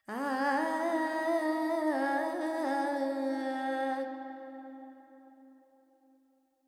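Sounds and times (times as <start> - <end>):
woman singing Carnatic alap in raga Charukesi with reverb: 0.0 - 4.0.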